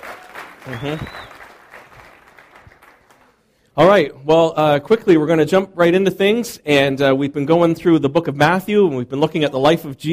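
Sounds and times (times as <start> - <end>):
audience applause for a congregation member being thanked: 0.0 - 3.5
speech: 0.6 - 1.3, 3.8 - 10.1.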